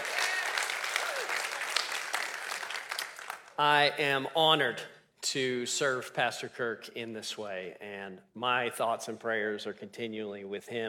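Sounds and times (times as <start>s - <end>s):
church congregation clapping as a pastor is welcomed to the pulpit: 0.0s - 3.7s
speech: 3.6s - 10.8s.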